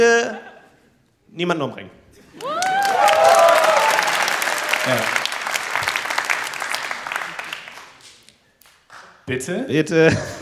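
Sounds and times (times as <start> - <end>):
speech: 1.3 - 2.6, 4.8 - 5.2, 9.3 - 10.4
applause from a small crowd: 2.4 - 8.8.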